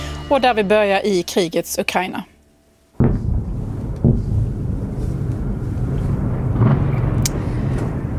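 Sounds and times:
speech: 0.3s - 2.3s
explosions from ballistic missile attack on city: 3.0s - 8.1s.

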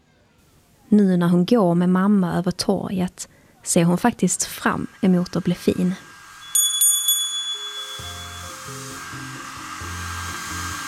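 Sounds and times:
speech: 0.9s - 6.1s
hair dryer whirring: 4.2s - 10.8s
shop door bell ringing as someone enters: 6.4s - 9.0s.

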